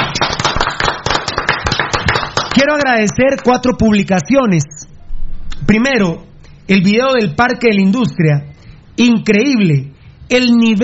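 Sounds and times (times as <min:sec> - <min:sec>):
loud audience applause: 0:00.0 - 0:02.6
speech: 0:02.6 - 0:04.8, 0:05.6 - 0:10.8.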